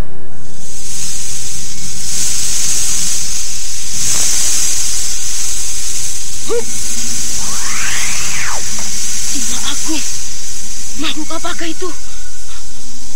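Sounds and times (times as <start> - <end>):
giant snake hissing, audio drama sound effect: 0.4 - 13.1
chirping sweeps: 7.2 - 12.6.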